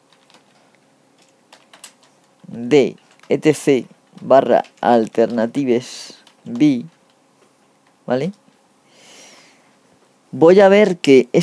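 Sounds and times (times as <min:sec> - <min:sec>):
typing an ls -l command on a computer keyboard: 0:00.0 - 0:08.6
speech: 0:02.5 - 0:07.0, 0:08.1 - 0:08.4, 0:10.3 - 0:11.4.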